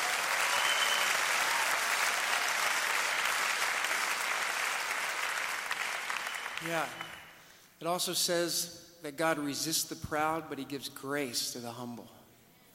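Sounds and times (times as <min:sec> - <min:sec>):
audience applause: 0:00.0 - 0:07.3
speech: 0:06.6 - 0:07.2, 0:07.8 - 0:12.2.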